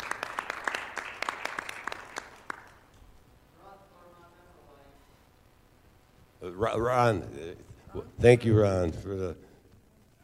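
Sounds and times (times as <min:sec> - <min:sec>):
audience round of applause: 0:00.0 - 0:02.9
speech: 0:06.6 - 0:09.5.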